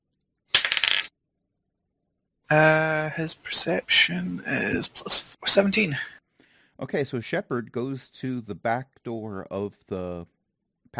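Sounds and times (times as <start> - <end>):
dice being rolled: 0.5 - 1.1
speech: 2.5 - 6.2, 6.8 - 10.9.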